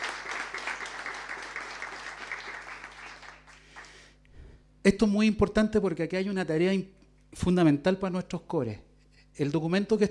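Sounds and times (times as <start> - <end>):
audience applause: 0.0 - 4.1
speech: 4.8 - 10.0.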